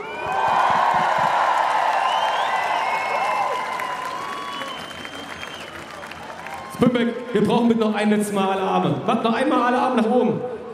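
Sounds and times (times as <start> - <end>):
crowd clapping at an on-stage event: 0.2 - 7.5
speech: 7.0 - 10.5.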